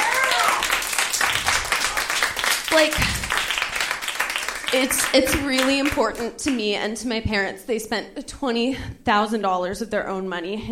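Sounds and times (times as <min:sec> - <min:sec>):
audience clapping: 0:00.0 - 0:06.7
speech: 0:02.7 - 0:03.3, 0:04.7 - 0:10.7.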